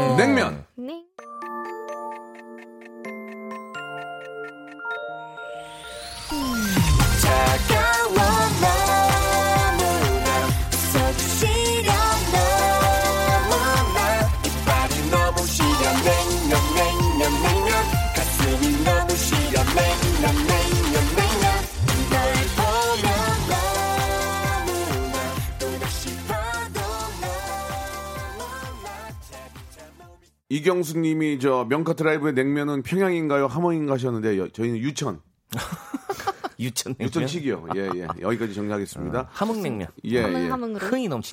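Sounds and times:
upbeat pop song played on air: 0.0s - 0.6s, 3.7s - 30.3s, 35.6s - 41.3s
speech: 30.5s - 35.8s, 36.6s - 41.3s
laughter: 35.5s - 38.8s.

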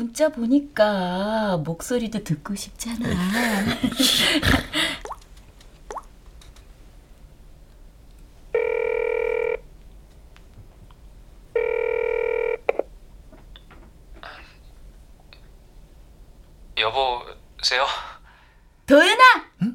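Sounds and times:
speech: 0.0s - 5.0s, 16.9s - 18.0s, 18.9s - 19.4s
laughter: 3.0s - 4.9s
phone ringback tone: 8.5s - 9.6s, 11.6s - 12.7s.

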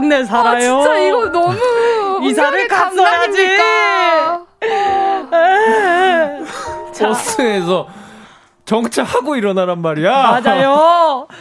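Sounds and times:
speech: 0.1s - 4.4s, 7.0s - 8.0s, 8.7s - 11.3s
person crying in loud wails: 0.5s - 3.9s, 4.6s - 7.5s.

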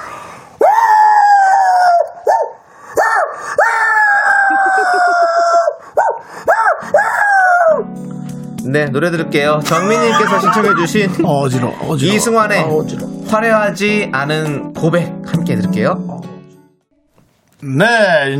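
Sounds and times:
person imitating a distant dog howling: 0.6s - 7.9s
laughter: 4.4s - 5.7s, 9.6s - 12.4s
speech: 8.7s - 16.1s, 17.6s - 18.3s.

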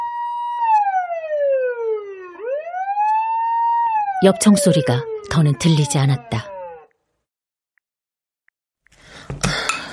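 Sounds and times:
police car siren wailing: 0.0s - 6.9s
speech: 4.2s - 6.5s.

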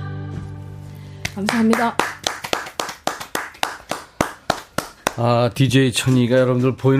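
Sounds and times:
one person clapping hands: 1.2s - 5.4s
speech: 1.8s - 2.1s, 5.2s - 6.9s.

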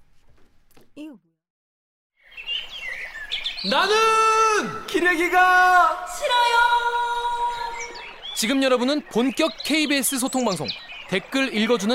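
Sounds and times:
speech: 1.0s - 1.3s, 3.6s - 7.0s, 8.4s - 11.9s
radio show logo jingle: 7.8s - 11.9s.

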